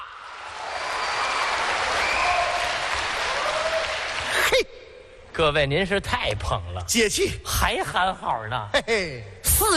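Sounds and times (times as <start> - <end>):
audience applause: 0.3 - 4.6
speech: 5.4 - 9.7.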